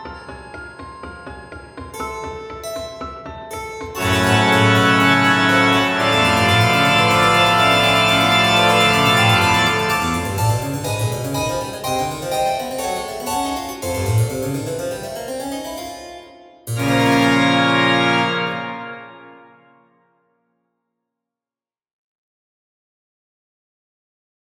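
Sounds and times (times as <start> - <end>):
keyboards: 0.0 - 19.7
organ: 4.0 - 12.9, 16.7 - 19.5.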